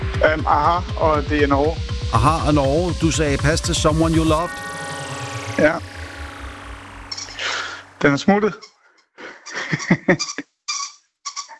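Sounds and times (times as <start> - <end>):
speech: 0.2 - 4.7, 5.6 - 5.9, 8.0 - 8.7, 9.7 - 10.5
laughter: 9.2 - 10.4
dog's squeaky toy squeaking: 10.2 - 11.5.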